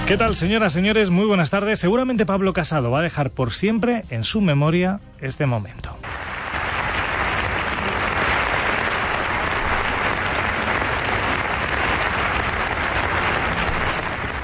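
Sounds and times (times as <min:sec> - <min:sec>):
speech: 0:00.1 - 0:06.1
applause from a large crowd: 0:06.0 - 0:14.4.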